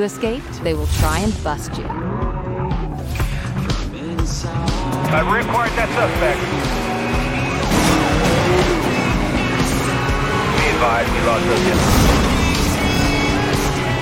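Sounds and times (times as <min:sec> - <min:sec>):
speech: 0:00.0 - 0:02.2, 0:04.3 - 0:06.8, 0:10.8 - 0:12.3
roaring car engine in Need for Speed Most Wanted: 0:01.4 - 0:13.9.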